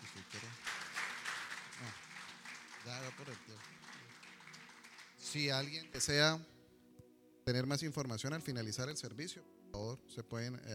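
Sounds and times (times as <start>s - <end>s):
audience applause: 0.0s - 5.5s
speech: 2.8s - 3.9s, 5.3s - 6.5s, 7.5s - 10.7s.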